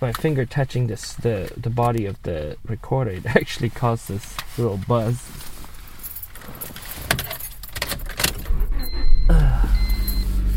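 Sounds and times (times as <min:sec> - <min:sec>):
speech: 0:00.0 - 0:05.5
car engine starting: 0:06.3 - 0:10.5.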